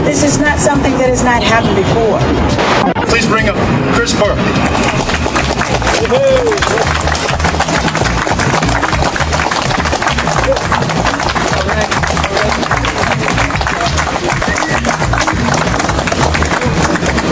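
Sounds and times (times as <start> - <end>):
speech: 0.1 - 5.1, 6.0 - 7.9
audience applause: 4.5 - 17.3.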